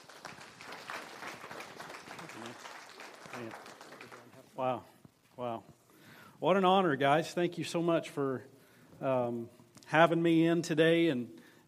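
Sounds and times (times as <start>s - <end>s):
church congregation applauding to welcome a guest pastor: 0.0s - 4.8s
speech: 3.4s - 3.7s, 4.6s - 5.8s, 6.4s - 11.6s.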